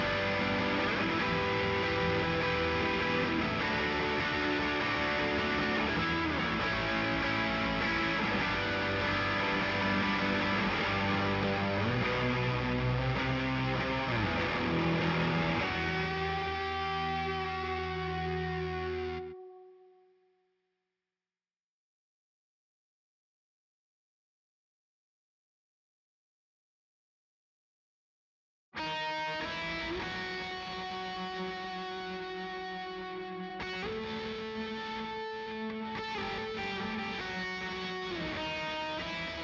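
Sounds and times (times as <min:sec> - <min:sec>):
guitars: 0:00.0 - 0:20.0, 0:28.8 - 0:39.4.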